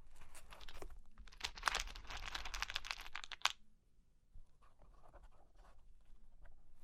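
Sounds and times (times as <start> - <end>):
cork and wood tapped and scratched: 0.4 - 3.6.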